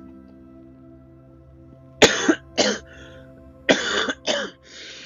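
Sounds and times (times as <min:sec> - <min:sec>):
harsh throaty coughing from someone with an upset stomach: 0:02.0 - 0:02.9, 0:03.7 - 0:04.6.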